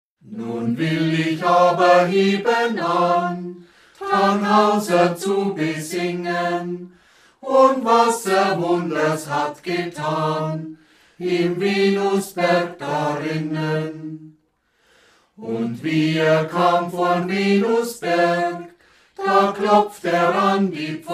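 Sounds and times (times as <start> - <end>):
ballads and Moritaten singing: 0.3 - 14.4, 15.4 - 21.1.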